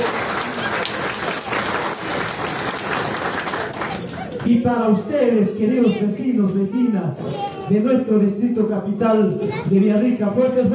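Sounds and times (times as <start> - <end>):
crowd applause: 0.0 - 4.5
speech: 4.4 - 10.7.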